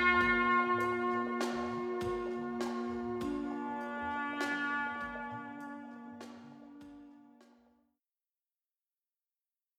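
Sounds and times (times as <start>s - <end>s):
22-EDO microtonal music: 0.0s - 7.5s.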